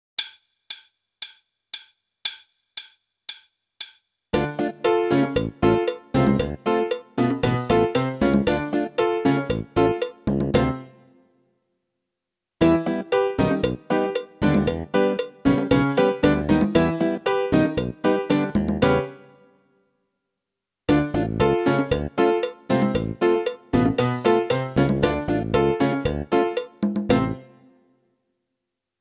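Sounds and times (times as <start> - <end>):
latin rock music: 4.4 - 10.7, 12.6 - 19.1, 20.9 - 27.4.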